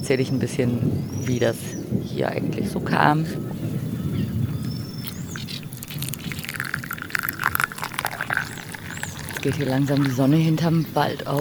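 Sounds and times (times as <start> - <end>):
faint high bird chirps: 0.0 - 2.4, 3.2 - 11.3
speech: 0.1 - 3.7, 9.4 - 11.3
coffee being poured into another container: 5.0 - 11.3.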